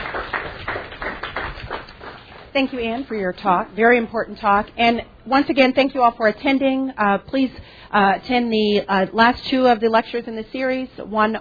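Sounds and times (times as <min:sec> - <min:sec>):
audience applause: 0:00.0 - 0:02.5
speech: 0:02.6 - 0:11.4.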